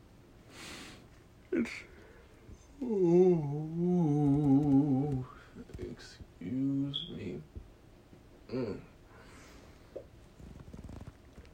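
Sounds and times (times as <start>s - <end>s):
speech: 1.6s - 1.9s, 2.8s - 4.0s
person yawning: 2.8s - 5.5s, 8.5s - 8.9s.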